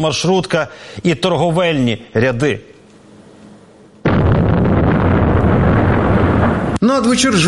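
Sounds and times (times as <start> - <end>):
speech: 0.0 - 2.7, 6.8 - 7.4
Russian Shahed kamikaze drone falling and detonating at a crossroads: 4.0 - 6.8.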